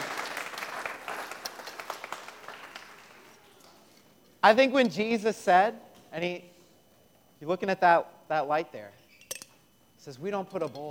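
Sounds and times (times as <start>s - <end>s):
round of applause: 0.0s - 3.4s
speech: 4.4s - 6.5s, 7.4s - 9.0s, 10.0s - 10.8s.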